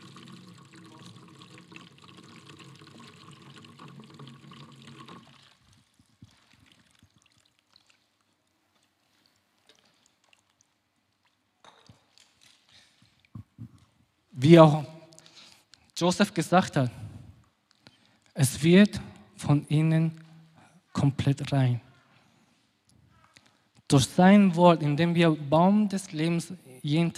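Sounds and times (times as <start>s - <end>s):
water pouring onto a tree: 0.0s - 8.3s
water dripping: 0.0s - 13.5s
speech: 14.4s - 14.9s, 16.0s - 17.0s, 18.6s - 20.2s, 21.0s - 21.8s, 23.9s - 27.1s.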